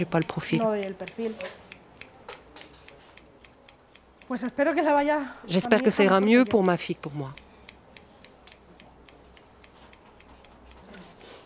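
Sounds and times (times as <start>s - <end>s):
speech: 0.0s - 1.6s, 4.3s - 7.4s
scissors snipping hair at a hair salon: 0.0s - 11.4s.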